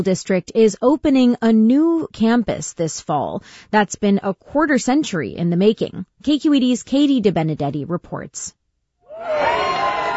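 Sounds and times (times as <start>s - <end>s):
speech: 0.0s - 8.6s, 9.2s - 9.8s
TK and kindergarten students cheering at opening of a new school in Mission Bay, San Francisco: 9.1s - 10.1s.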